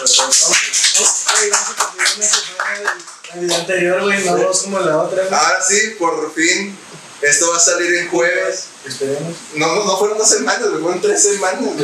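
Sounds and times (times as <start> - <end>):
applause: 0.0 - 3.6
speech: 0.1 - 1.6, 3.7 - 11.8.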